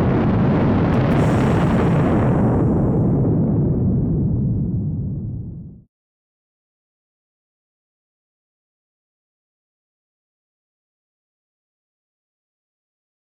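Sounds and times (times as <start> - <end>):
rocket launch: 0.0 - 5.9.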